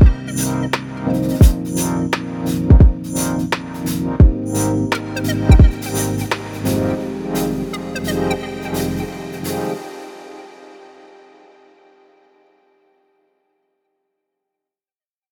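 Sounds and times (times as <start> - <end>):
vlog music beat for trailer or promo background: 0.0 - 11.0.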